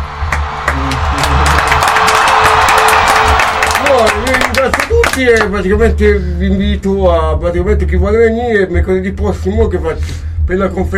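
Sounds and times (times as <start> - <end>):
applause: 0.0 - 5.6
speech: 4.6 - 10.9.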